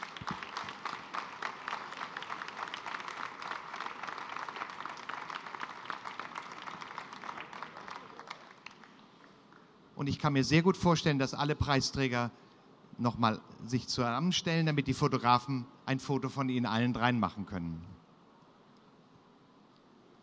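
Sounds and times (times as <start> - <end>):
audience applause: 0.0 - 9.4
speech: 10.0 - 12.4, 13.0 - 17.9.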